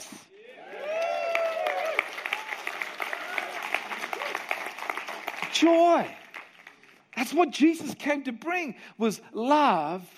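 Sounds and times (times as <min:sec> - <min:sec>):
audience cheering: 0:00.4 - 0:05.6
audience clapping: 0:00.6 - 0:07.4
speech: 0:05.6 - 0:06.2, 0:07.2 - 0:10.1.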